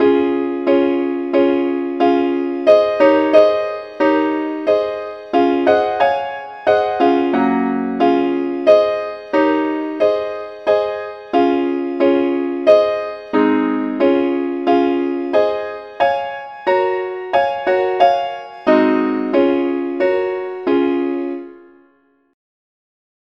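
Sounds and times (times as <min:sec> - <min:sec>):
simple accompaniment in C sharp: 0:00.0 - 0:22.3.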